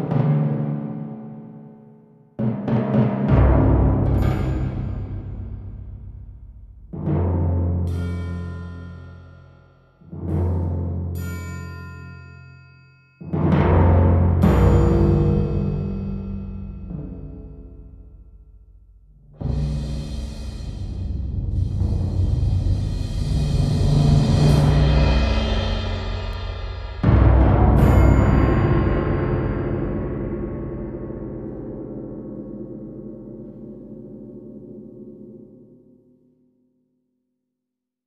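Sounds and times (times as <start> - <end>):
percussion: 0.0 - 37.2.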